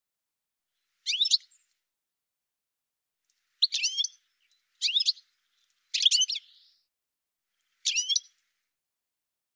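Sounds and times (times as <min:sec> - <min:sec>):
bird giving short harsh chirping calls: 0:00.8 - 0:01.8, 0:03.6 - 0:06.9, 0:07.6 - 0:08.4.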